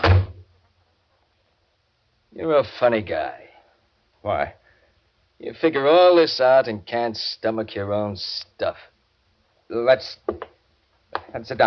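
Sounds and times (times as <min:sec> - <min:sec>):
door being shut: 0:00.0 - 0:00.5
speech: 0:02.4 - 0:03.5, 0:04.2 - 0:04.6, 0:05.4 - 0:08.9, 0:09.7 - 0:10.5, 0:11.2 - 0:11.6.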